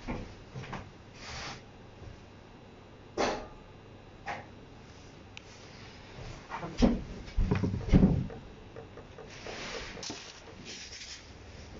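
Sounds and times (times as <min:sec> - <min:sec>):
low steady hum: 0:00.0 - 0:11.7
heavier thuds: 0:06.8 - 0:10.6
knocks and clicks: 0:07.4 - 0:10.7.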